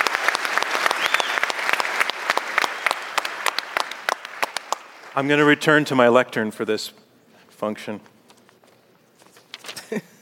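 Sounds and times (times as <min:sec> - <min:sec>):
audience round of applause: 0:00.0 - 0:05.4
speech: 0:05.2 - 0:07.0, 0:07.6 - 0:08.1.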